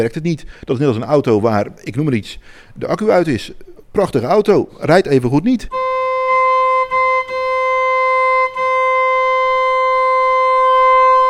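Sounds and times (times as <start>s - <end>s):
speech: 0.0s - 5.9s
two organ pipes beating while being tuned: 5.7s - 11.2s.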